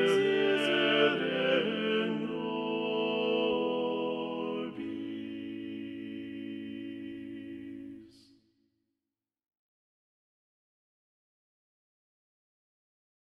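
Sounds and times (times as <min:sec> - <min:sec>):
choir with balanced voices singing: 0:00.0 - 0:08.3.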